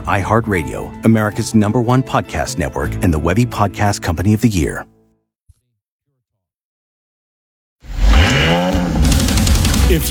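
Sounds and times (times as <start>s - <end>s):
speech: 0.0s - 4.9s
sports car engine revving: 7.9s - 10.0s.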